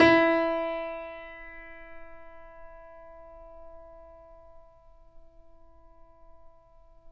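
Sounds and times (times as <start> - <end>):
grand piano E2 note played mezzo-forte: 0.0 - 4.5.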